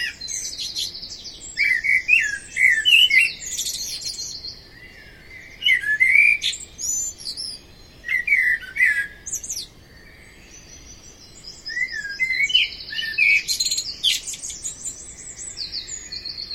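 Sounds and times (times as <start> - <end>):
blackbird singing: 0.0 - 16.5.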